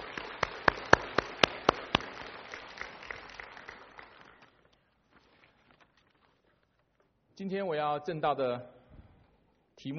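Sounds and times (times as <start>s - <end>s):
audience applause: 0.0s - 4.7s
speech: 7.4s - 8.8s, 9.8s - 9.9s.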